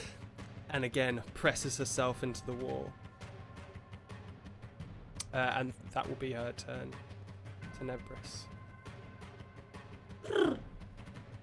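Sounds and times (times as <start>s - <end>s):
speech: 0.7s - 3.0s, 5.3s - 7.1s, 7.8s - 8.5s
voice imitating a purr: 10.2s - 10.7s.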